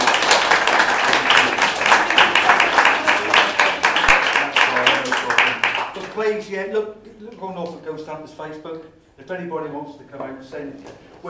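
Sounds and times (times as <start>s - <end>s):
audience applause: 0.0s - 6.2s
speech: 6.3s - 11.2s.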